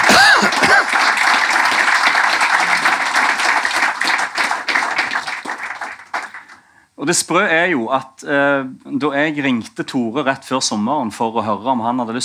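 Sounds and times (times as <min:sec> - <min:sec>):
audience applause: 0:00.0 - 0:06.6
speech: 0:07.0 - 0:12.2.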